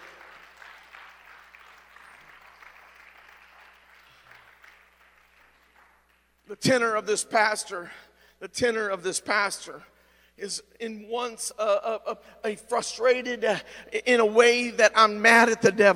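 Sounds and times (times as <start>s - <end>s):
audience clapping: 0.0s - 6.5s
speech: 6.5s - 15.9s.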